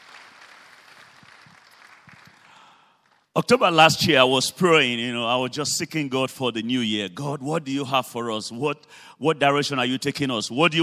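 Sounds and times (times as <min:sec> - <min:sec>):
audience applause: 0:00.0 - 0:03.3
speech: 0:03.4 - 0:10.8.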